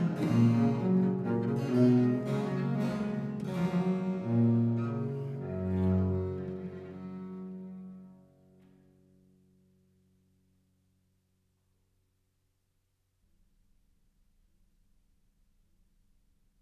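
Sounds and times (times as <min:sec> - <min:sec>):
courante in G major: 0:00.0 - 0:07.8.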